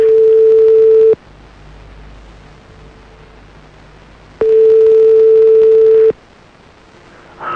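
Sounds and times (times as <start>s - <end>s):
phone ringing tone on a call: 0.0s - 1.2s, 4.4s - 6.1s.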